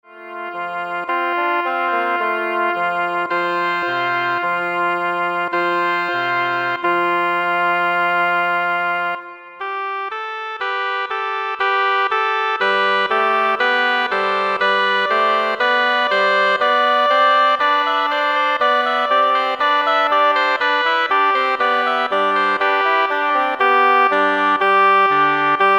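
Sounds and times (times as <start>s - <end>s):
double reed ensemble playing a nursery rhyme: 0.2s - 25.7s.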